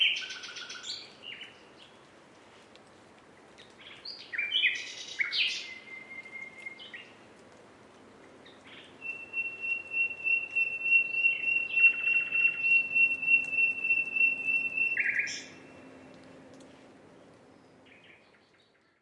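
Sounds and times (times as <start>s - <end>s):
common nightingale song: 0.0s - 2.0s, 3.8s - 7.1s, 8.4s - 16.0s.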